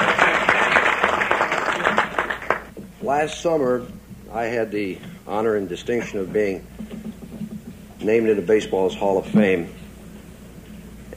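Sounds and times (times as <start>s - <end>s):
banquet crowd applauding: 0.0s - 2.7s
speech: 3.1s - 6.7s, 8.0s - 9.8s.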